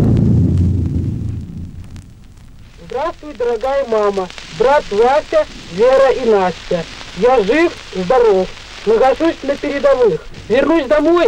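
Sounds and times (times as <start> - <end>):
artillery battery firing: 0.0 - 3.0
speech: 3.0 - 11.2.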